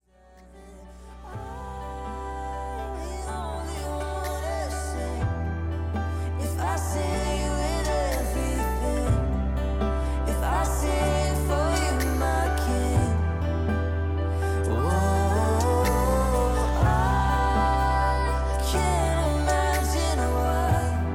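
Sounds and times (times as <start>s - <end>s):
acoustic song: 0.1s - 21.1s.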